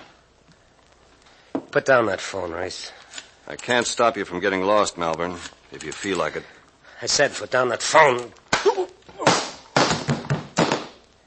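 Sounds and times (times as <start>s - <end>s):
speech: 1.7s - 8.9s
slap across the face: 8.5s - 11.0s.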